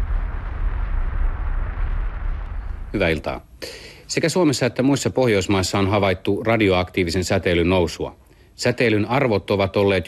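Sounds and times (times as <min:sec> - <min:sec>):
Chernobyl nuclear power plant explosion, deep continuous roaring rumble: 0:00.0 - 0:03.5
speech: 0:02.9 - 0:10.0.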